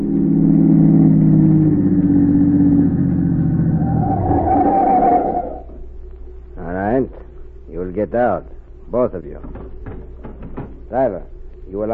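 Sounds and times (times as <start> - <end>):
car engine driving and revving: 0.0 - 5.8
speech: 8.1 - 9.7, 10.9 - 11.9.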